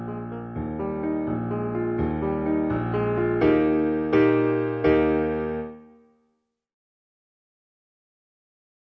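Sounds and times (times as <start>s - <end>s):
instrumental accompaniment: 0.0s - 6.1s.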